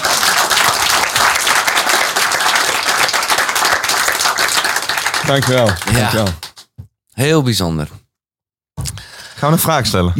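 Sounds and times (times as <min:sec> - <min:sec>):
audience applause: 0:00.0 - 0:06.7
speech: 0:05.3 - 0:06.4, 0:07.2 - 0:08.0, 0:09.4 - 0:10.1.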